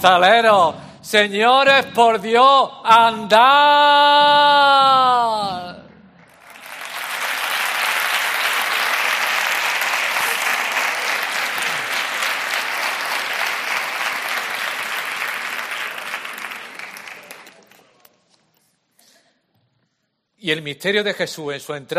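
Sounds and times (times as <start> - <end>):
speech: 0.0 - 5.8, 20.4 - 21.9
crowd applauding a procession: 6.2 - 18.1.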